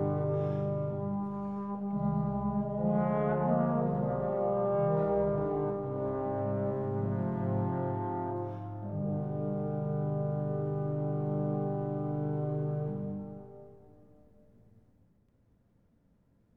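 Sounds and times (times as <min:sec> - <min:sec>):
two trombones playing a baroque adagio: 0:00.0 - 0:14.4.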